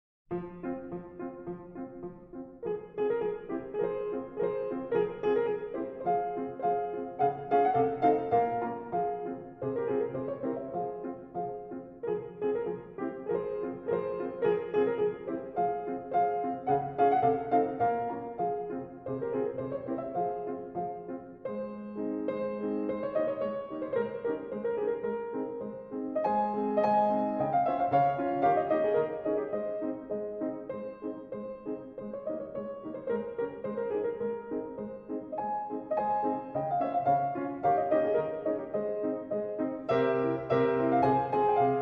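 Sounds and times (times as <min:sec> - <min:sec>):
grand piano: 0:00.3 - 0:41.7.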